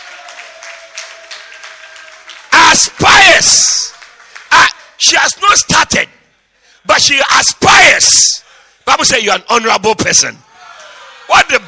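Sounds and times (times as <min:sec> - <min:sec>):
audience clapping hands: 0:00.0 - 0:05.0
speech: 0:02.8 - 0:06.2, 0:06.8 - 0:10.5, 0:11.3 - 0:11.6.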